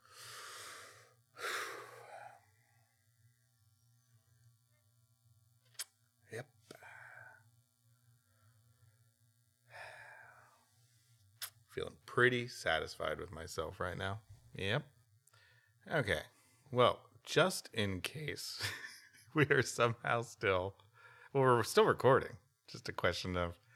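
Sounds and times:
person breathing deliberately and confidently: 0.0 - 2.9, 6.7 - 7.4, 9.7 - 11.0, 15.3 - 15.8, 20.9 - 21.4
speech: 6.3 - 6.6, 11.8 - 14.9, 15.9 - 23.6.

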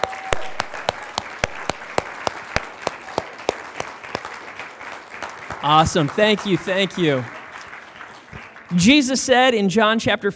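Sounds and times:
audience applause: 0.0 - 9.6
sharp rhythmic claps: 0.0 - 9.8
speech: 5.6 - 7.4, 8.7 - 10.3.

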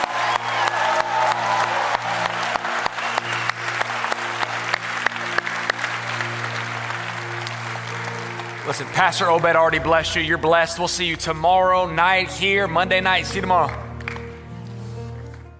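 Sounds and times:
audience applause: 0.0 - 10.6, 13.2 - 14.4
speech: 8.7 - 13.8.

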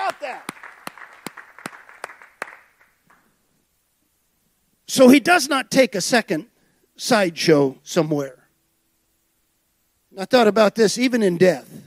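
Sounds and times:
scattered applause: 0.0 - 3.3
crowd clapping in rhythm: 0.0 - 3.4
speech: 4.9 - 8.4, 10.1 - 11.8.

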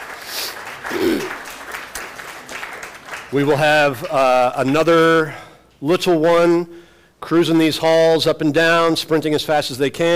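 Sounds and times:
audience clapping: 0.0 - 4.9
speech: 3.3 - 10.1.

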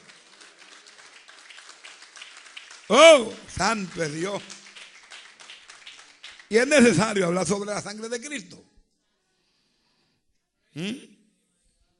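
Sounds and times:
audience applause: 0.0 - 7.4
man exclaiming: 2.9 - 3.4
speech: 2.9 - 4.6, 6.5 - 8.7, 10.8 - 11.1.

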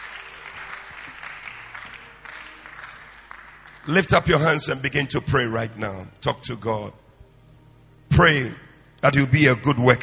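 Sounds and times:
crowd clapping: 0.0 - 4.6
speech: 3.9 - 7.0, 8.2 - 10.0.

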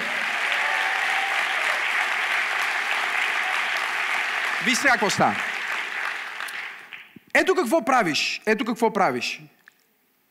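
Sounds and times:
audience applause: 0.0 - 7.2
speech: 4.6 - 5.5, 7.4 - 9.6.

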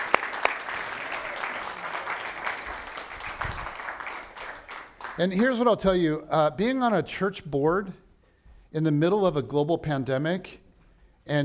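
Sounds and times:
audience clapping: 0.0 - 5.7
speech: 5.2 - 8.0, 8.7 - 10.6, 11.2 - 11.4.

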